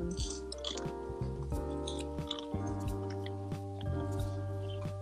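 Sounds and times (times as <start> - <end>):
biting and chewing breaded food and fries: 0.1 - 4.8.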